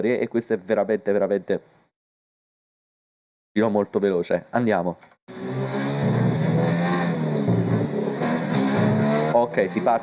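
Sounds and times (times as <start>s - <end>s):
speech: 0.0s - 1.8s, 3.6s - 5.8s, 9.5s - 10.0s
Formula 1 car engine lapping Sochi in the video game F1 2019: 5.3s - 10.0s.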